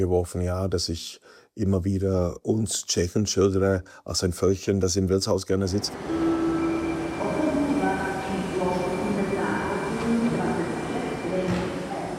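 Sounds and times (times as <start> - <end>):
speech: 0.0 - 6.2
rail cars rumbling in a busy train station: 5.8 - 12.1.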